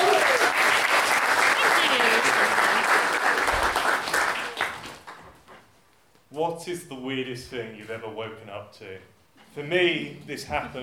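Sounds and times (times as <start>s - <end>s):
audience applause: 0.0s - 5.4s
speech: 6.6s - 10.8s.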